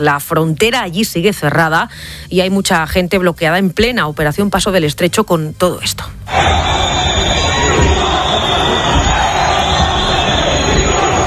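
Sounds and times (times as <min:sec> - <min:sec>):
speech: 0:00.0 - 0:07.1
crowd booing: 0:06.3 - 0:11.2.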